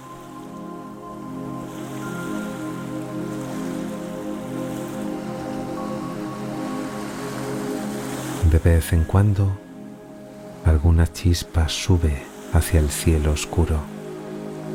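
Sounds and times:
gentle sea waves on beach: 0:00.0 - 0:10.8, 0:11.4 - 0:14.7
speech: 0:08.6 - 0:09.6, 0:10.8 - 0:13.9.

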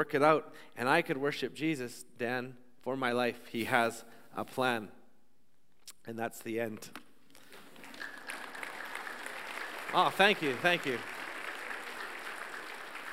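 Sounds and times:
speech: 0:00.0 - 0:05.0, 0:06.0 - 0:07.0, 0:09.9 - 0:11.2
audience applause: 0:07.5 - 0:13.1.

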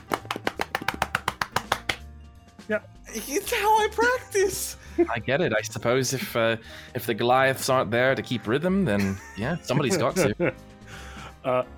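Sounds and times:
body percussion slapping: 0:00.0 - 0:02.1
speech: 0:02.7 - 0:10.7, 0:11.4 - 0:11.7.

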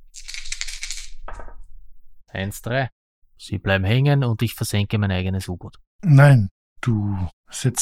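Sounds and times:
two six-sided dice rattling and tumbling: 0:00.2 - 0:01.3
speech: 0:02.3 - 0:07.7.

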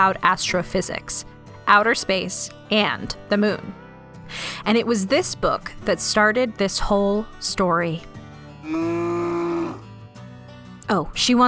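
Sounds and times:
speech: 0:00.0 - 0:09.0, 0:10.9 - 0:11.4
cow mooing: 0:08.6 - 0:09.9.

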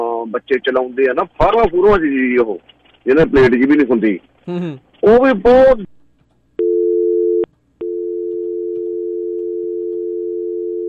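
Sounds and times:
speech: 0:00.2 - 0:06.0
telephone tone after a call cuts off on a new phone system: 0:06.6 - 0:10.8.

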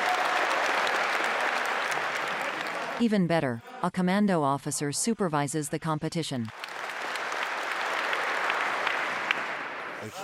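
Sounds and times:
audience applause: 0:00.0 - 0:03.0, 0:06.5 - 0:10.2
speech: 0:03.0 - 0:06.6, 0:10.0 - 0:10.2.

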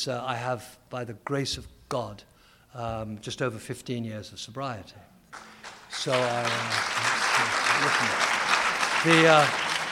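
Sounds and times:
speech: 0:00.0 - 0:08.3, 0:09.0 - 0:09.7
steady audience applause: 0:05.4 - 0:09.9.

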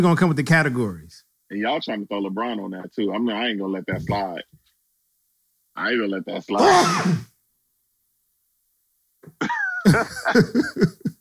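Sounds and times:
speech: 0:00.0 - 0:04.6, 0:05.8 - 0:07.3, 0:09.2 - 0:11.0
loud sneeze: 0:06.6 - 0:07.3
laughter: 0:09.4 - 0:11.2.

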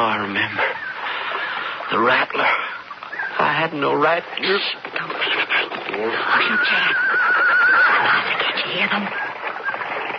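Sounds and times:
faint voices murmuring: 0:00.0 - 0:10.1
speech: 0:01.9 - 0:02.6, 0:03.6 - 0:05.2, 0:06.0 - 0:09.3
horse neighing: 0:04.6 - 0:10.1.

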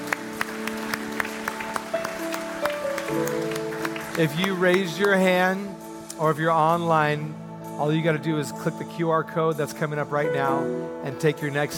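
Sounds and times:
audience applause: 0:00.0 - 0:05.4
speech: 0:04.2 - 0:11.7.

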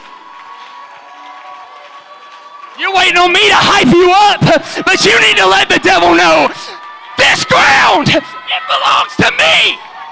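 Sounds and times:
audience clapping: 0:00.0 - 0:10.0
speech: 0:02.8 - 0:09.9.

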